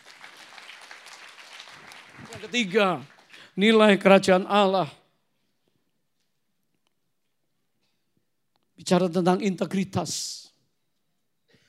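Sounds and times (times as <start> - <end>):
audience clapping: 0.0 - 4.1
speech: 2.4 - 5.0, 8.9 - 10.5.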